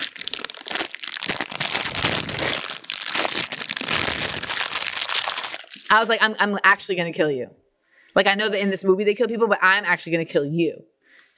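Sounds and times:
person imitating a Sour Patch Kids candy bag being opened: 0:00.0 - 0:06.1
speech: 0:05.9 - 0:07.6, 0:08.2 - 0:11.3.

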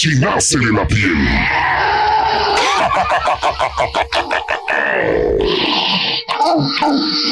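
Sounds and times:
speech: 0:00.0 - 0:07.2
eerie supernatural moan: 0:01.0 - 0:07.2
laughter: 0:01.8 - 0:05.3.

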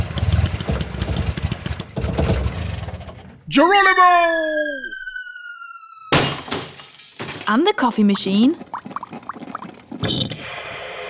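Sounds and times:
lawnmower petrol engine running: 0:00.0 - 0:03.4
speech: 0:03.6 - 0:04.7, 0:07.5 - 0:08.8.

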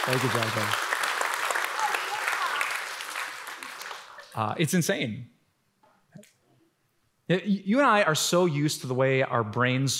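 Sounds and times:
speech: 0:00.0 - 0:00.9, 0:04.4 - 0:05.4, 0:07.3 - 0:09.9
audience applause: 0:00.0 - 0:04.4.

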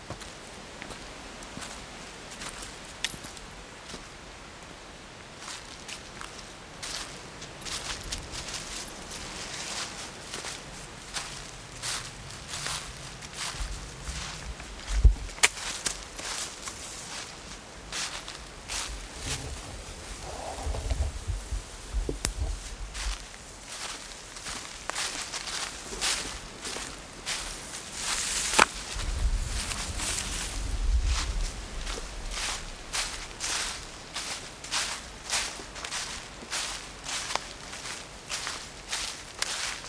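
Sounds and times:
soft wind hiss: 0:00.6 - 0:39.7
footsteps crunching through dry fallen leaves on a woodland walk: 0:05.4 - 0:39.8.

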